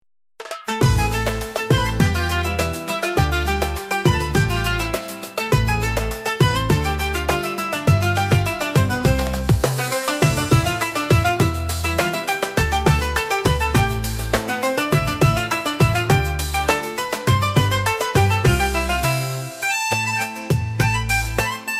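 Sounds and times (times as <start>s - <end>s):
Arabic music with desert echoes: 0.4s - 21.7s.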